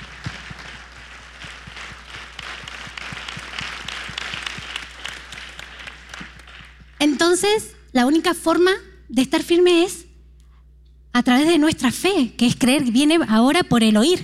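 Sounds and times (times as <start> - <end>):
audience applause: 0.0 - 7.0
low hum: 0.0 - 9.7
speech: 7.0 - 10.0, 11.2 - 14.2.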